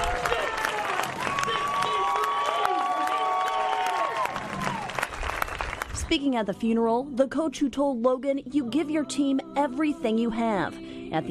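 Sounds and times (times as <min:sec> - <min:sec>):
high-pitched whoops and shouts: 0:00.0 - 0:04.9
large crowd cheering: 0:00.0 - 0:06.0
speech: 0:06.1 - 0:11.2.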